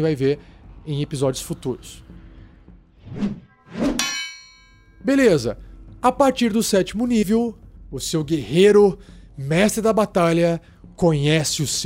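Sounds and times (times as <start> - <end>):
speech: 0.0 - 2.2, 5.0 - 11.8
hammer striking an anvil: 3.9 - 5.0.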